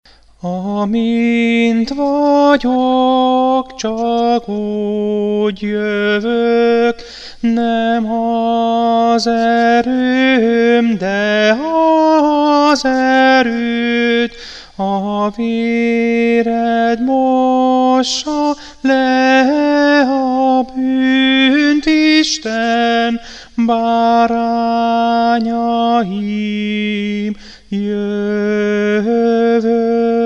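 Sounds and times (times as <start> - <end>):
tenor singing: 0.4 - 30.2.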